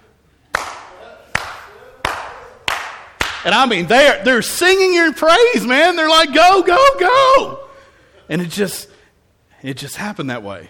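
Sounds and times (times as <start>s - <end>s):
rhythmic coach-style hand clapping: 0.4s - 3.7s
speech: 3.4s - 7.6s, 8.3s - 8.9s, 9.6s - 10.6s.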